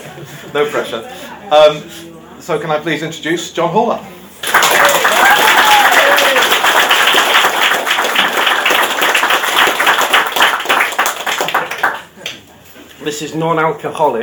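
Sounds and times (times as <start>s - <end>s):
speech: 0.2s - 4.6s, 13.0s - 14.2s
audience applause: 4.4s - 12.2s
faint whoops: 4.7s - 6.7s.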